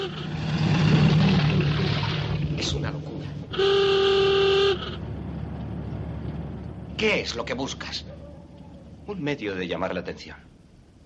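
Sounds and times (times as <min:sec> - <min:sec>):
military car engine passing on dirt street: 0:00.0 - 0:09.2
speech: 0:07.0 - 0:08.2, 0:09.1 - 0:10.5.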